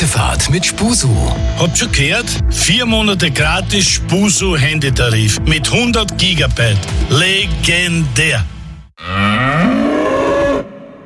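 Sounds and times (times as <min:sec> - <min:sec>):
speech: 0:00.0 - 0:09.3
cow mooing: 0:09.0 - 0:10.8.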